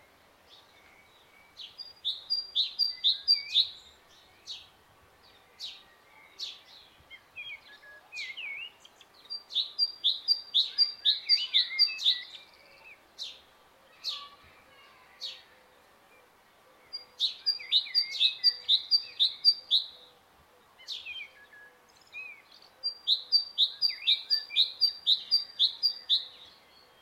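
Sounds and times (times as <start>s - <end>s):
great tit Parus major singing: 0.6s - 4.7s, 5.3s - 14.4s, 16.2s - 20.1s, 21.9s - 27.0s.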